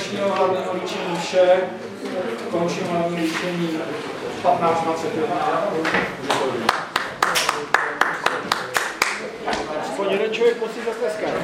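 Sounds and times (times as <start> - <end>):
speech: 0.1 - 6.8, 10.1 - 11.4
clapping in a courtroom: 6.2 - 9.7.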